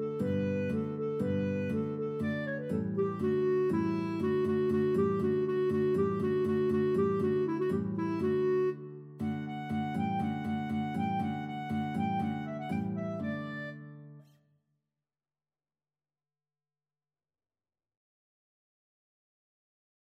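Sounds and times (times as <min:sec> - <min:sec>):
guitar and clarinet duet: 0:00.0 - 0:14.3.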